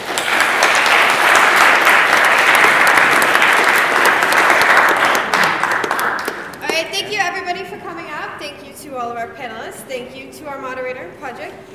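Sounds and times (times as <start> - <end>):
audience applause: 0.0 - 6.8.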